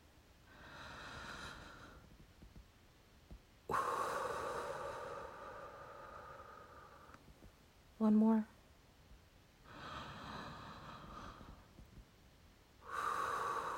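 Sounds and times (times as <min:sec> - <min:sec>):
person breathing deeply: 0:00.4 - 0:02.1, 0:03.7 - 0:07.2, 0:09.6 - 0:11.8, 0:12.8 - 0:13.7
speech: 0:08.0 - 0:08.5.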